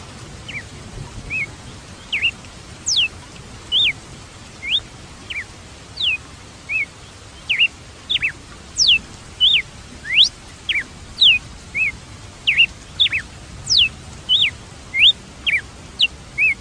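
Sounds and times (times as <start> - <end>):
red-cowled cardinal singing high whistled phrases: 2.1 - 3.1, 3.7 - 4.0, 4.6 - 6.9, 7.5 - 16.5.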